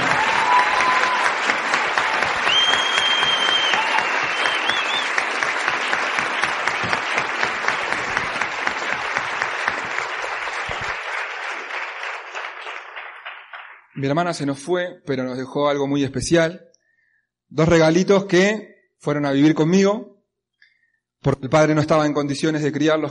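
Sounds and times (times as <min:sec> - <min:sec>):
audience applause: 0:00.0 - 0:14.0
speech: 0:14.0 - 0:16.7, 0:17.5 - 0:20.1, 0:21.2 - 0:23.0.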